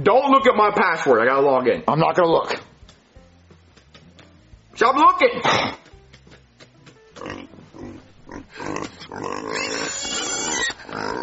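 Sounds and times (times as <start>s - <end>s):
speech: 0.0s - 2.7s, 4.8s - 5.8s
pigs oinking: 7.0s - 11.2s.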